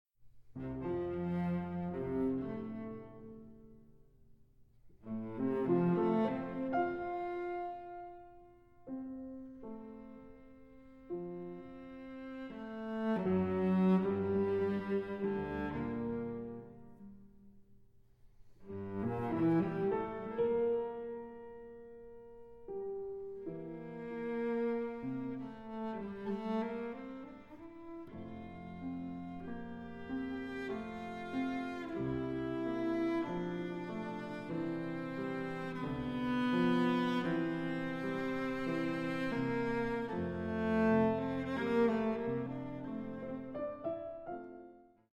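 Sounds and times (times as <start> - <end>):
classical sonata: 0.2 - 45.1.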